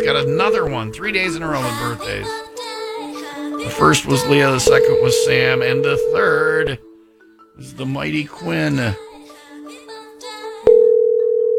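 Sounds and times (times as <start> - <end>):
telephone ringing on an unanswered call: 0.0 - 2.3, 3.7 - 6.8, 7.6 - 9.0, 10.7 - 11.5
speech: 0.0 - 2.5, 3.6 - 6.9, 7.6 - 9.1.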